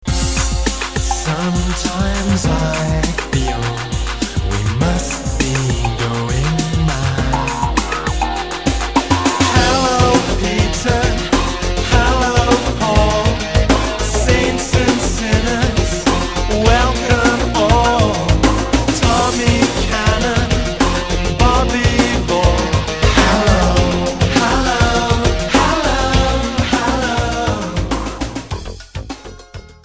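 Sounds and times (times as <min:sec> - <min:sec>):
synthpop music: 0:00.0 - 0:29.8.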